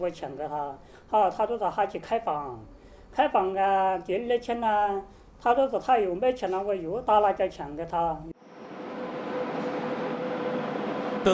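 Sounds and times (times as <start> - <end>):
speech: 0.0 - 8.3
train running on rails: 8.4 - 11.3.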